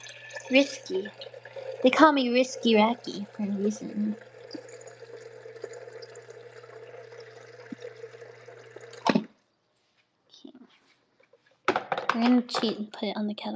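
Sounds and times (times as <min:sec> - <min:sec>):
water being poured: 0:00.0 - 0:09.3
speech: 0:00.5 - 0:04.3, 0:12.2 - 0:13.5.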